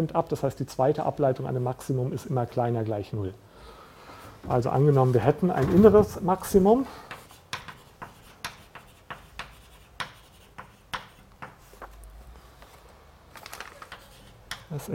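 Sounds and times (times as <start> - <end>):
speech: 0.0 - 3.8, 4.4 - 7.2
lecturer writing a math formula by hand: 7.1 - 12.0.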